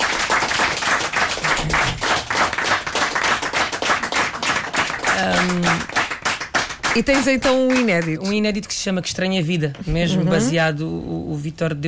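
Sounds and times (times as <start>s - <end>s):
audience applause: 0.0s - 8.3s
speech: 7.0s - 11.8s.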